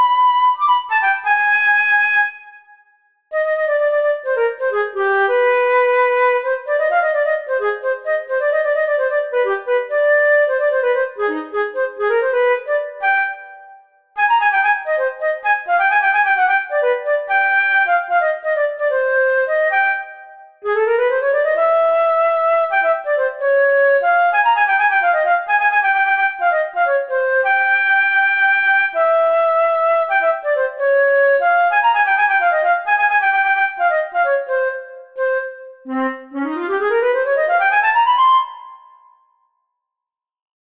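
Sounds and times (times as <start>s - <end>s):
transverse flute: 0.0s - 39.3s.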